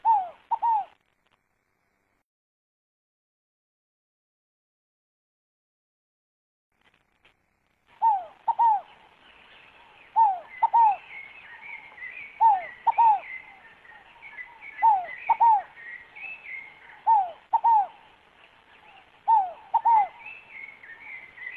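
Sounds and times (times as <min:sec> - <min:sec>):
scaled dove cooing: 0:00.0 - 0:01.0, 0:08.0 - 0:09.0, 0:10.1 - 0:18.1, 0:19.3 - 0:21.5.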